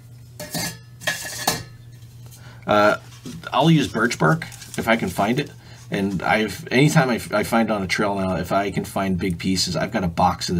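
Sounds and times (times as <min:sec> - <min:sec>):
metal camping pot clinking and scraping against a stove: 0:00.4 - 0:01.8
speech: 0:02.6 - 0:10.5.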